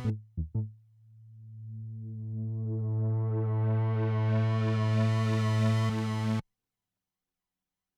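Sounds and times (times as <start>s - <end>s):
Wampler Terraform and Malekko Manther flanger effect: 1.4s - 6.4s.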